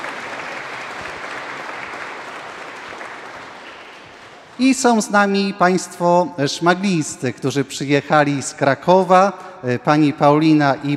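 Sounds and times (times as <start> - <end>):
audience applause: 0.0 - 4.6
speech: 4.6 - 10.9.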